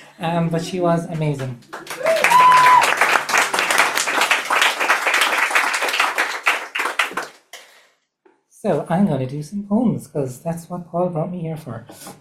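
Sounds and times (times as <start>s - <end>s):
speech: 0.2s - 2.5s, 8.6s - 12.2s
audience applause: 1.6s - 7.5s.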